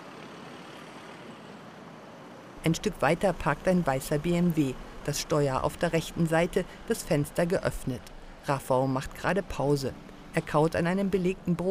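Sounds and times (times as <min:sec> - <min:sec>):
van speeding off, engine and road noise: 0:00.0 - 0:11.6
speech: 0:02.6 - 0:11.6.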